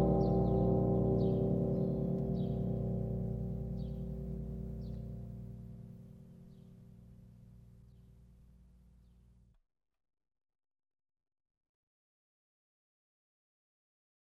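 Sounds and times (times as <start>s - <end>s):
Russian church bells ringing in Rostov: 0.0s - 5.5s.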